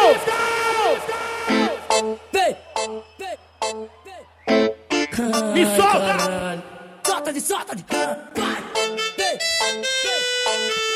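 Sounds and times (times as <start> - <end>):
crowd shouting and cheering: 0.0 - 10.9
speech: 7.3 - 8.6.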